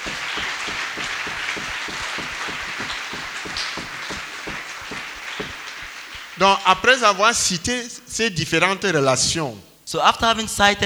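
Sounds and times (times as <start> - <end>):
audience clapping: 0.0 - 7.0
speech: 6.4 - 10.8.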